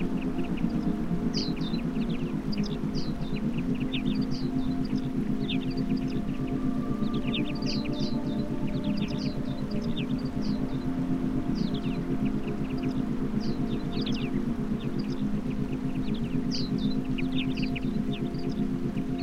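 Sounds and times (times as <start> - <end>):
forest sounds for meditation: 0.0 - 19.2.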